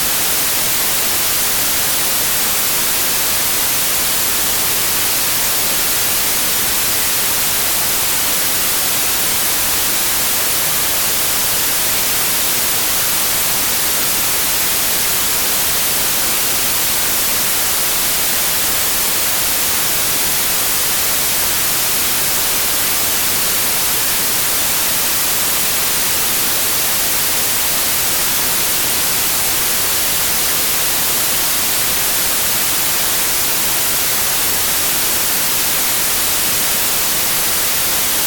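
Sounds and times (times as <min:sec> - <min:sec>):
white noise: 0:00.0 - 0:38.2.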